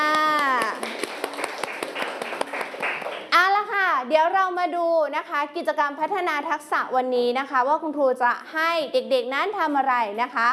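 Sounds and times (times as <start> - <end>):
children clapping hands: 0.0 - 3.4
speech: 4.1 - 10.5.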